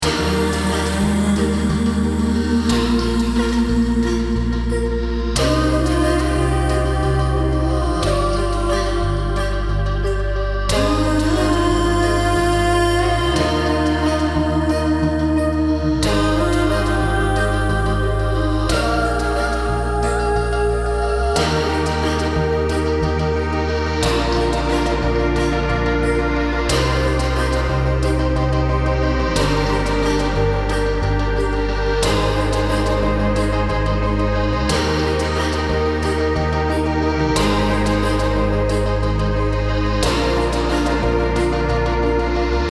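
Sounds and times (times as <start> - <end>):
healing melody: 0.0 - 42.7.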